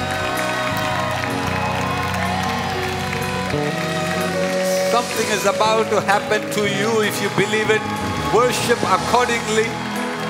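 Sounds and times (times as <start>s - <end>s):
audience clapping: 0.0s - 10.2s
speech: 5.0s - 9.8s.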